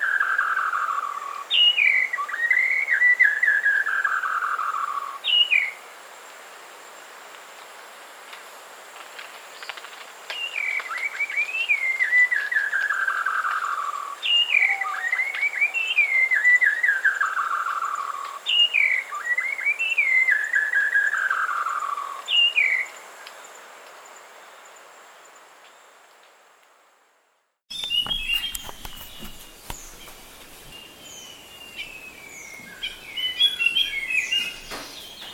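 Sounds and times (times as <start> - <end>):
shama bird singing: 0.0 - 5.8, 10.4 - 23.0, 27.7 - 35.3.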